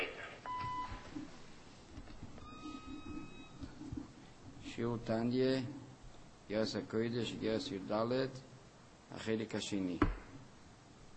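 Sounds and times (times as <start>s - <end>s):
faint tonal whine: 0.0s - 6.3s
low rumbling hiss: 0.0s - 11.1s
electronic beep: 2.4s - 3.6s
speech: 4.8s - 5.8s, 6.5s - 8.5s, 9.1s - 10.1s.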